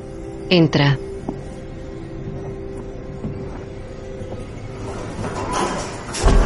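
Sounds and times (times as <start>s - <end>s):
speech: 0.5s - 1.0s
lift sliding door closing: 4.7s - 6.4s.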